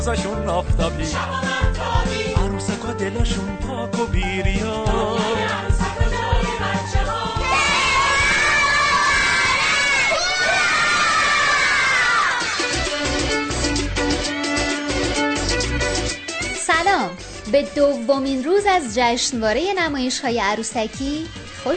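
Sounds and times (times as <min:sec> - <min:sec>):
speech: 0:00.0 - 0:06.0, 0:17.5 - 0:21.7
music: 0:00.0 - 0:21.7
children shouting and cheering at a festival: 0:07.4 - 0:12.8.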